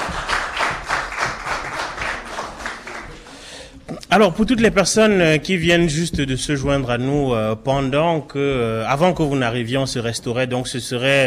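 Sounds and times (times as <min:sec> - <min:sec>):
audience applause: 0:00.0 - 0:03.7
speech: 0:04.1 - 0:11.2.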